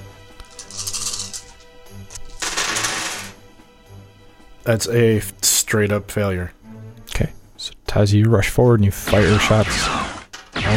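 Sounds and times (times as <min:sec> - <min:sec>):
dice being rolled: 0:00.4 - 0:03.3
speech: 0:04.7 - 0:06.6, 0:07.2 - 0:10.0.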